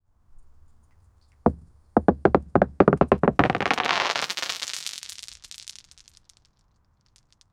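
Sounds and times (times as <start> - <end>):
big stones falling: 1.5 - 5.9.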